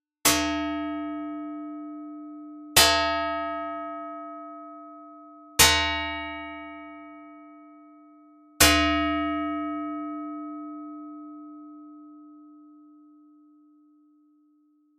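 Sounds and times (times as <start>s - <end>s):
gong: 0.2s - 14.9s.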